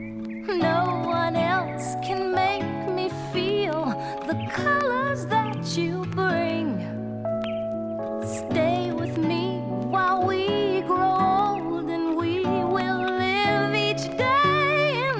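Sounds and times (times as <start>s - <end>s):
birds: 0.0s - 15.1s
music: 0.0s - 15.1s.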